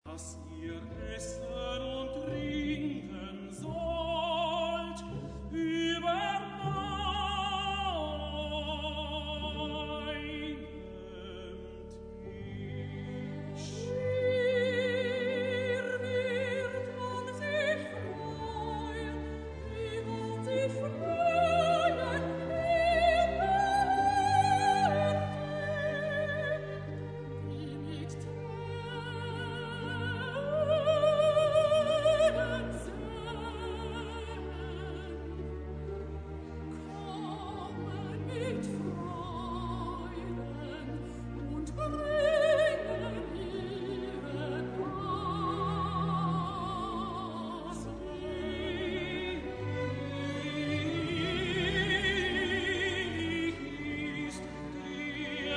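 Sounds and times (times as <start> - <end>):
solo music: 0.0 - 55.5.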